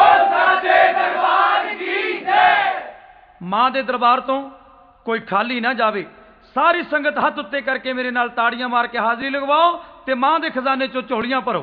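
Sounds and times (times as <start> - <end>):
crowd of devotees shouting a Jaikara chant at a devotional gathering: 0.0 - 3.0
speech: 3.5 - 11.6.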